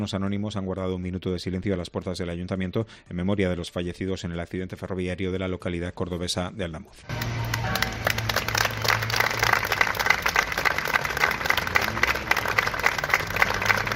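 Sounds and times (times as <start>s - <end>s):
speech: 0.0s - 8.0s
crowd applauding after a minute of silence: 7.1s - 13.9s.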